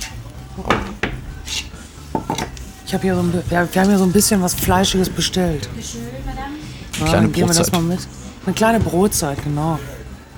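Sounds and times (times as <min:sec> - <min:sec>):
dishes and cutlery clattering as food is served: 0:00.0 - 0:10.3
low hum: 0:00.0 - 0:10.3
laughter: 0:00.2 - 0:10.3
speech: 0:00.6 - 0:01.0, 0:02.2 - 0:10.0.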